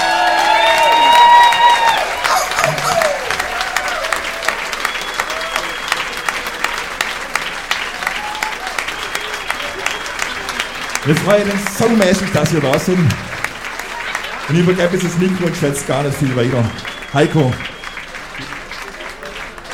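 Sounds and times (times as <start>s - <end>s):
crowd clapping enthusiastically: 0.0s - 19.7s
speech: 11.1s - 13.3s, 14.5s - 17.7s
high whistled calls: 16.7s - 18.1s.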